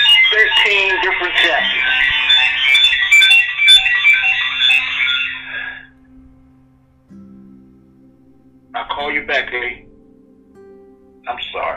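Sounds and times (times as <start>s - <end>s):
cell phone ringing with an electronic ringtone: 0.0s - 6.0s
speech: 0.6s - 2.2s, 9.3s - 9.8s.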